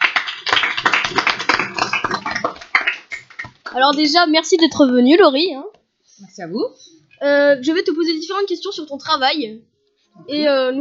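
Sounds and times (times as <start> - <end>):
crowd applauding: 0.0 - 3.8
speech: 3.8 - 10.7.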